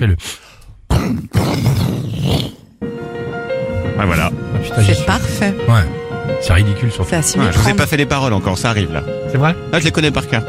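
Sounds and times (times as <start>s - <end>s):
speech: 0.0s - 0.4s, 1.0s - 1.9s, 4.0s - 10.4s
voice imitating a thunderstorm with roaring rumbles and growls: 0.9s - 2.7s.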